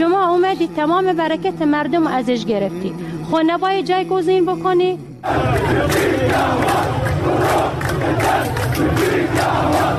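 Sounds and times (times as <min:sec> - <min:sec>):
speech: 0:00.0 - 0:09.9
protest crowd chanting: 0:05.1 - 0:09.9.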